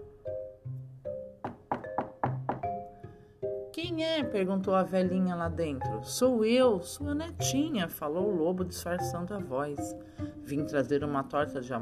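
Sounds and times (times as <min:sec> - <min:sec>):
knocking on a door: 0:01.4 - 0:02.8
speech: 0:03.8 - 0:11.8.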